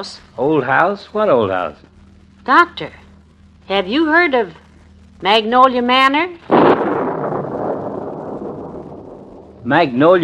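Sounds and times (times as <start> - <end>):
speech: 0.0 - 3.0, 3.7 - 4.6, 5.2 - 6.6, 9.7 - 10.2
loud thunderclap: 6.4 - 10.2.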